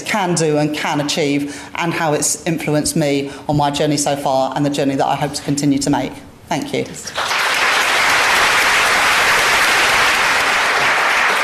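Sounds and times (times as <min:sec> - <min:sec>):
speech: 0:00.1 - 0:07.3
audience applause: 0:07.1 - 0:11.4.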